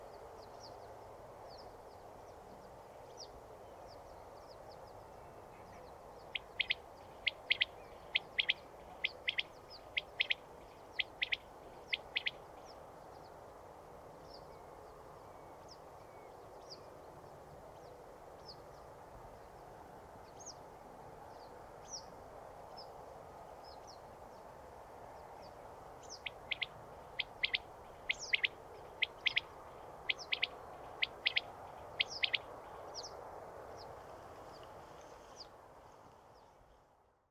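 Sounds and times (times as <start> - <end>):
quail calling: 6.3 - 10.4, 11.0 - 12.4, 26.2 - 29.5, 30.1 - 32.5.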